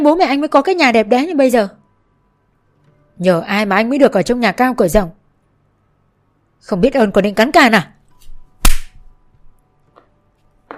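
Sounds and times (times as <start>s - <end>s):
speech: 0.0s - 1.8s, 3.2s - 5.2s, 6.6s - 8.0s
man slapping a person hard across the face: 8.6s - 9.0s.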